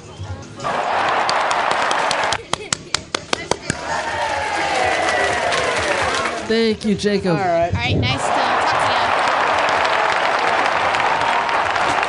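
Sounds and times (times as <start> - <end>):
crowd noise and voices cheering: 0.6 - 2.4, 3.6 - 6.5, 8.0 - 12.0
audience clapping: 0.7 - 6.5, 8.2 - 12.0
speech: 6.5 - 8.3.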